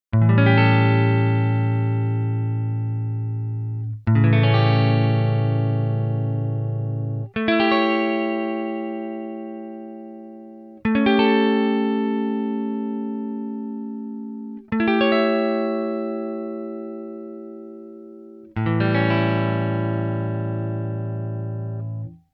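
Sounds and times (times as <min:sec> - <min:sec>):
A7 chord shapes: 0:00.2 - 0:22.2.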